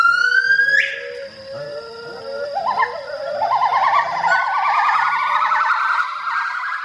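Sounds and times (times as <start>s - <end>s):
Hainan gibbon calling: 0.0s - 6.8s.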